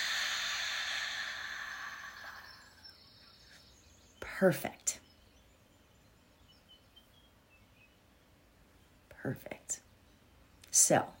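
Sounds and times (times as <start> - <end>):
deep breath drawn in through the nose and let out: 0.0 - 2.9
speech: 4.4 - 5.0, 10.9 - 11.1.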